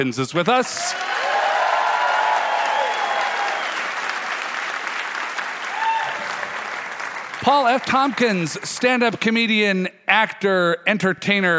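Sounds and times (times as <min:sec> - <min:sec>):
speech: 0:00.0 - 0:01.2, 0:07.4 - 0:11.5
studio audience applauding a guest comedian at a live show taping: 0:00.6 - 0:09.1.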